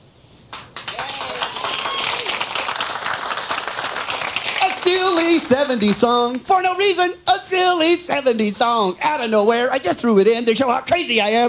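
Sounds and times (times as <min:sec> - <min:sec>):
audience applause: 0:00.5 - 0:06.4
cheering and whooping voices: 0:00.8 - 0:03.6
speech: 0:04.9 - 0:11.4.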